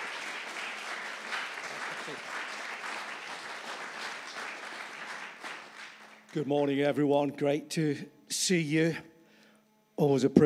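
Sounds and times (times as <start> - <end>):
congregation applause welcoming a speaker: 0.0 - 6.9
speech: 6.3 - 9.1, 10.0 - 10.4.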